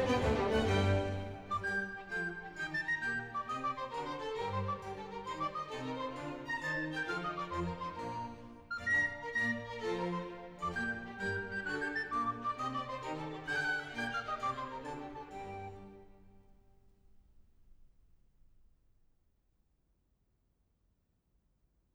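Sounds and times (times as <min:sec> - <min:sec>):
orchestral suite in G major: 0:00.0 - 0:16.4.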